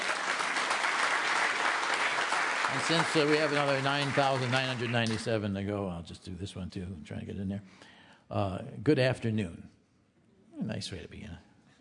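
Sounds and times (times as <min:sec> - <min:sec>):
applause: 0:00.0 - 0:05.5
speech: 0:02.7 - 0:09.8, 0:10.6 - 0:11.5.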